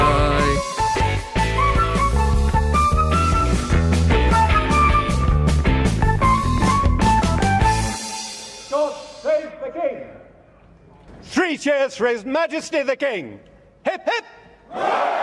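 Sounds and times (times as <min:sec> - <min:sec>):
theme song music: 0:00.0 - 0:09.3
speech: 0:11.6 - 0:15.2.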